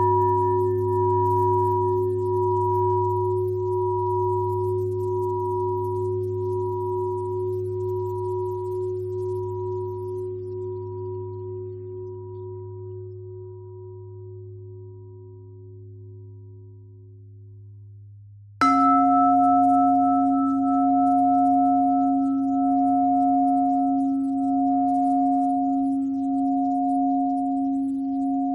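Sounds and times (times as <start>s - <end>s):
pentatonic bell melody: 0.0s - 12.8s, 18.6s - 28.5s.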